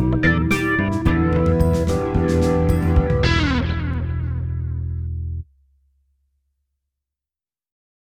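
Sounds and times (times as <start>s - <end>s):
phaser organ: 0.0s - 5.1s.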